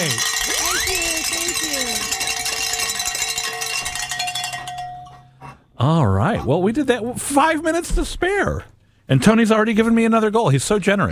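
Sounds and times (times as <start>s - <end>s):
bells ringing: 0.0s - 5.4s
speech: 5.8s - 11.0s.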